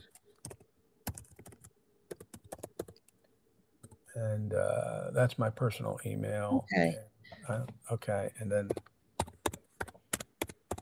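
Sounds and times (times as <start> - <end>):
computer keyboard keystrokes typing an email address: 0.1 - 3.2, 8.7 - 10.8
speech: 4.2 - 8.9.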